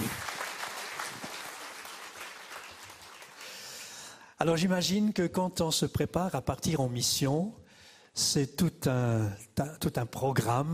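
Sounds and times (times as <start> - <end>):
audience applause: 0.0 - 3.8
speech: 4.4 - 7.6, 8.2 - 10.7.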